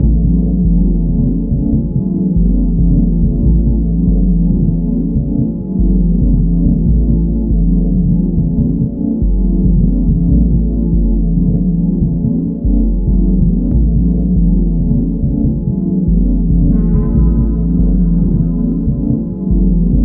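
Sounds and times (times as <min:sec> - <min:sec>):
ambient music: 0:00.0 - 0:20.0.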